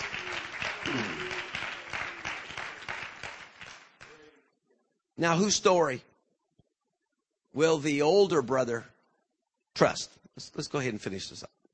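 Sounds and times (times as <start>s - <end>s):
audience clapping hands: 0.0s - 4.5s
speech: 5.2s - 6.1s, 7.6s - 8.9s, 9.8s - 11.6s.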